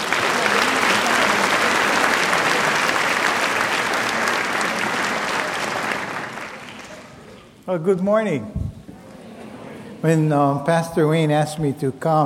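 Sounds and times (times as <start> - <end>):
audience applause welcoming a pastor: 0.0 - 7.3
speech: 7.7 - 8.6, 10.0 - 12.2.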